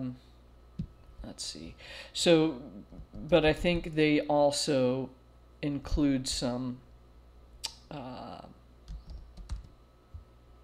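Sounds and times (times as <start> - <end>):
speech: 0.0 - 0.3, 1.4 - 6.8, 7.9 - 8.5
typing on a computer keyboard: 8.9 - 9.7.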